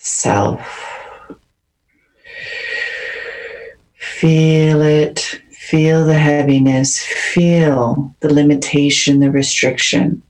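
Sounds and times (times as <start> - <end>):
speech: 0.2 - 0.8, 4.2 - 10.2
deep breath during a guided meditation: 0.6 - 1.4, 2.0 - 4.2.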